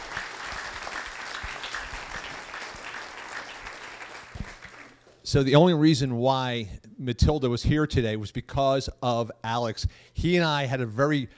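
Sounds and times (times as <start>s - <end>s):
audience applause: 0.0s - 5.1s
speech: 5.3s - 11.3s.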